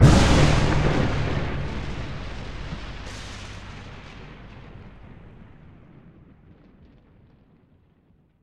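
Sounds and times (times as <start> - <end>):
thunder strike: 0.0 - 6.6.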